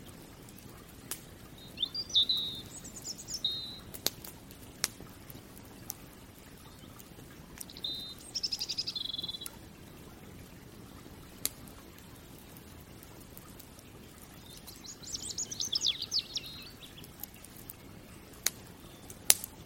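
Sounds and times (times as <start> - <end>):
fireplace crackling: 0.0 - 19.6
bird chirps: 1.6 - 3.9, 7.6 - 9.5, 14.4 - 17.5.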